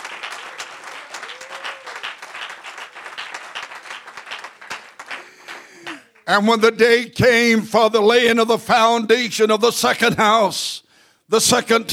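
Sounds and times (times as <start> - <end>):
audience clapping: 0.0 - 6.3
speech: 6.3 - 11.9.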